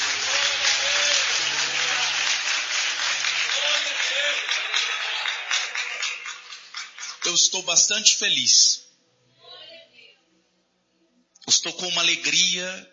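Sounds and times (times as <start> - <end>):
audience applause: 0.0 - 7.5
speech: 7.5 - 8.8, 11.6 - 12.9.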